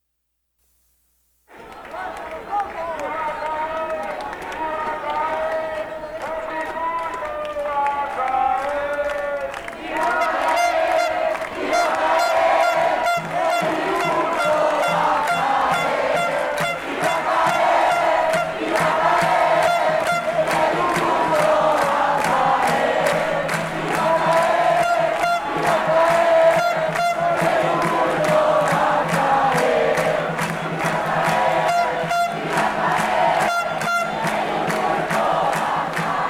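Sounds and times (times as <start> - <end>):
street protest march crowd noise: 1.5 - 36.2.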